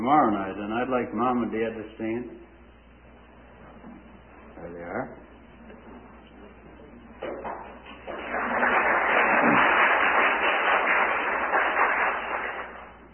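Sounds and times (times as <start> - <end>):
speech: 0.0 - 2.5, 4.6 - 5.3
audience applause: 8.0 - 13.0.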